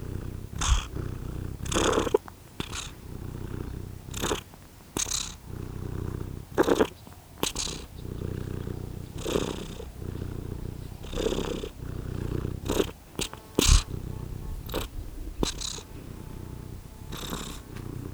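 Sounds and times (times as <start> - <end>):
domestic cat purring: 0.0 - 18.1
rustling: 8.2 - 18.1.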